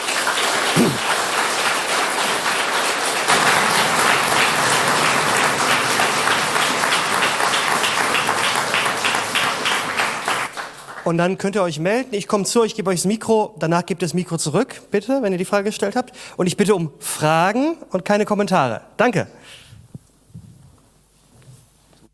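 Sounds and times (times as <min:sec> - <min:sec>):
applause: 0:00.0 - 0:11.4
speech: 0:00.8 - 0:01.1, 0:11.1 - 0:19.6.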